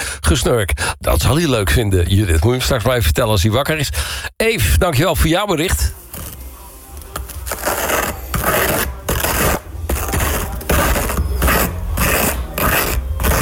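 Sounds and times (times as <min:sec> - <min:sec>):
speech: 0:00.3 - 0:06.0
spreading butter on a rusk: 0:07.2 - 0:13.4.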